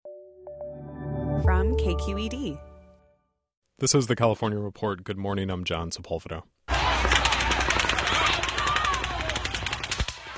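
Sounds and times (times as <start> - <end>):
speech: 1.4 - 2.7, 3.8 - 6.8
automatic gunfire at the Route 91 country music festival in Las Vegas: 7.0 - 10.3.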